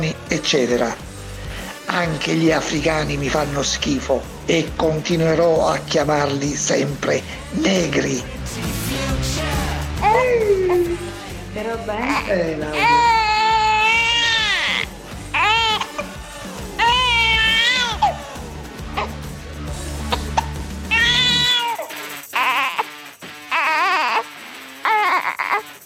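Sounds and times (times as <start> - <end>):
adult talking: 0.0 - 1.0, 1.8 - 8.4, 10.0 - 13.5
speech: 0.0 - 1.1, 1.9 - 8.8, 10.1 - 13.1
baby girl crying in drawn-out wails: 9.9 - 11.2, 12.0 - 19.3, 20.0 - 25.8.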